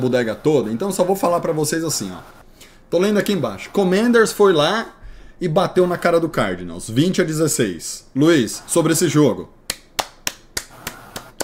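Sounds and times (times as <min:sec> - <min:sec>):
speech: 0:00.0 - 0:09.6
hand clapping: 0:09.7 - 0:11.4.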